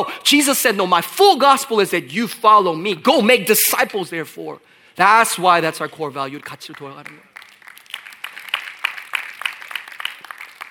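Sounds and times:
speech: 0.0 - 7.3
person clapping: 6.4 - 10.6.

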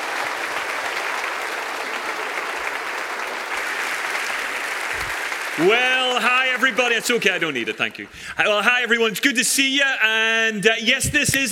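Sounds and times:
audience applause welcoming a speaker at a morning talk: 0.0 - 8.6
speech: 5.6 - 11.4.

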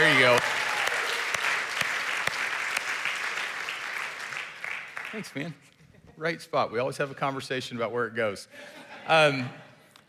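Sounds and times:
audience applauding: 0.0 - 5.5
speech: 0.2 - 0.6, 5.2 - 9.6.

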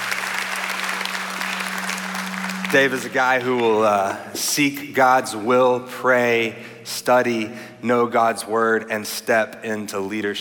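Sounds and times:
audience applause: 0.0 - 3.8
speech: 2.7 - 10.3.

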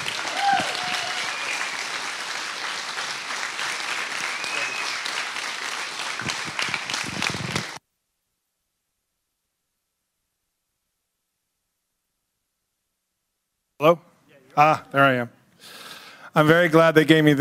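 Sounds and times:
congregation applauding at a Father's Day church service: 0.0 - 7.8
speech: 13.8 - 15.4, 16.4 - 17.4.

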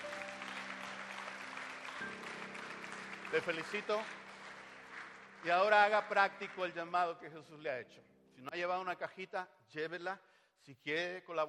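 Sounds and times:
audience applauding: 0.0 - 7.2
speech: 3.3 - 4.2, 5.4 - 11.4.

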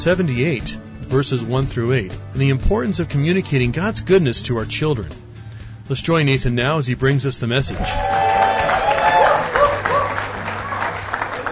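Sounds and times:
speech: 0.0 - 5.3, 5.9 - 8.2
crowd applause: 7.8 - 11.5.

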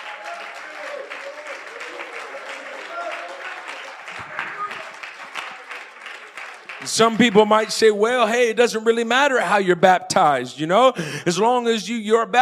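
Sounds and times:
audience clapping hands: 0.0 - 8.5
speech: 6.8 - 12.4.

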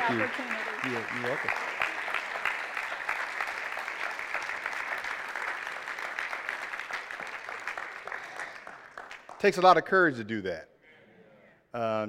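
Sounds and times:
audience applause: 0.0 - 9.5
speech: 0.1 - 1.7, 9.4 - 10.7, 11.7 - 12.0.

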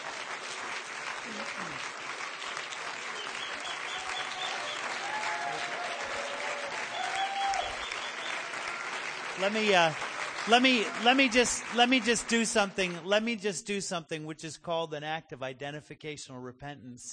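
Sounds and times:
audience clapping: 0.0 - 13.6
speech: 1.3 - 2.0, 9.4 - 17.1.

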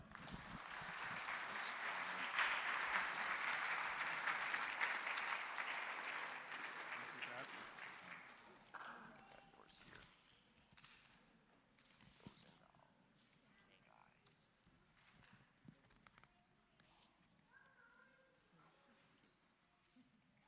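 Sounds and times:
audience applauding: 0.0 - 9.0.

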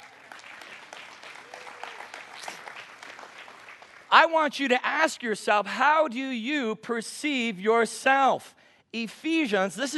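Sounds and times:
audience hand clap for teachers: 0.0 - 4.3
speech: 4.1 - 9.9.

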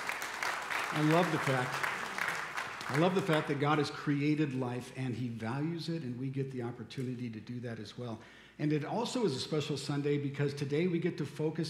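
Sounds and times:
audience applause: 0.0 - 3.8
speech: 0.9 - 1.9, 2.9 - 11.6.

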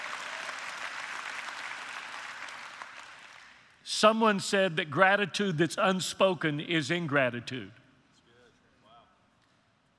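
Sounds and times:
audience applauding: 0.0 - 3.6
speech: 3.9 - 7.8.

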